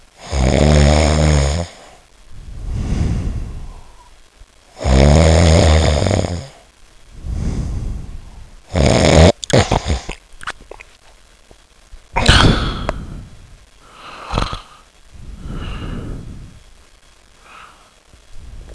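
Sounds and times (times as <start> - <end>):
person snoring: 0.2 - 1.9, 2.5 - 4.1, 4.8 - 6.6, 7.2 - 10.2, 12.2 - 13.3, 13.9 - 16.6.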